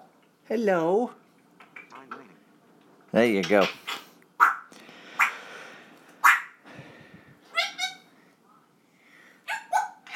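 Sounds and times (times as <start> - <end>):
speech: 0.5 - 1.2, 3.1 - 3.8
dog barking: 4.4 - 4.7, 6.2 - 6.6, 9.5 - 10.0.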